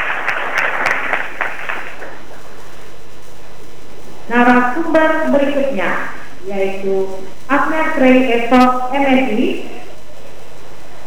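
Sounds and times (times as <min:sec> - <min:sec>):
audience applause for a speaker at a panel: 0:00.0 - 0:02.9
speech: 0:04.3 - 0:09.8.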